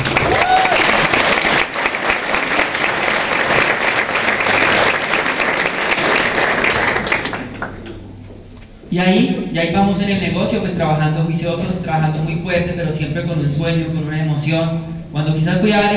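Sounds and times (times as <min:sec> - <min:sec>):
audience applause: 0:00.0 - 0:07.8
speech: 0:09.0 - 0:15.9.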